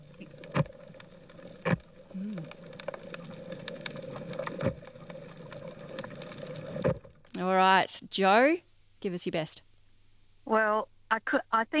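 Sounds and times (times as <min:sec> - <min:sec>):
parrotfish munching on coral: 0:00.0 - 0:07.3
speech: 0:07.4 - 0:09.7, 0:10.5 - 0:11.7.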